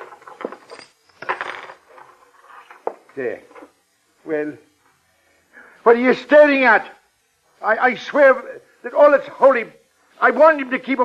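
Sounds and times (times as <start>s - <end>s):
coins dropping and being picked up: 0.0s - 2.3s
speech: 3.2s - 3.6s, 4.2s - 4.7s, 5.8s - 7.0s, 7.6s - 11.0s.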